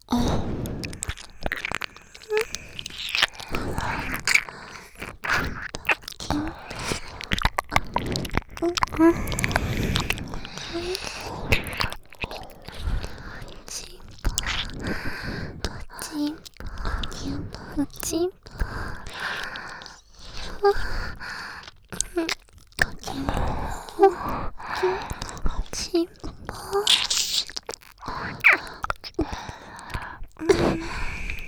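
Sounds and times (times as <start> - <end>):
ear licking: 0.0 - 31.4.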